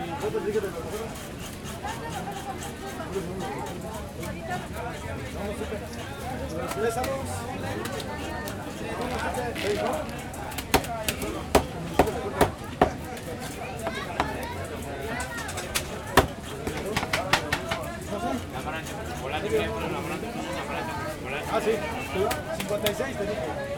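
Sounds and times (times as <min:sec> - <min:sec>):
busy fish market crowd: 0:00.0 - 0:23.7.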